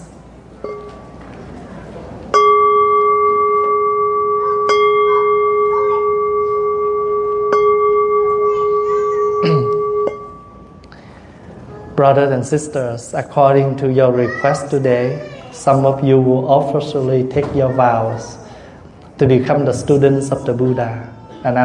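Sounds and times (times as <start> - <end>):
temple bell strikes: 2.4 - 10.6
speech: 12.0 - 18.4, 19.2 - 21.6.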